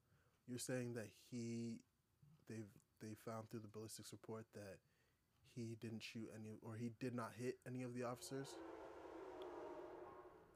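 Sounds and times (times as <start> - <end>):
speech: 0.5 - 1.9, 2.5 - 8.7
train passing by: 8.0 - 10.5.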